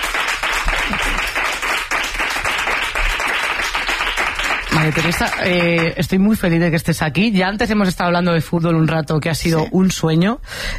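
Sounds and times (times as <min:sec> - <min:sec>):
audience applause: 0:00.0 - 0:06.0
speech: 0:00.9 - 0:01.3, 0:04.8 - 0:10.7.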